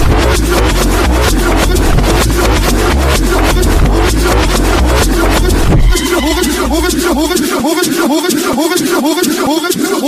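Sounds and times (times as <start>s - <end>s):
reversed music: 0.0s - 8.3s
laughter: 0.3s - 10.0s.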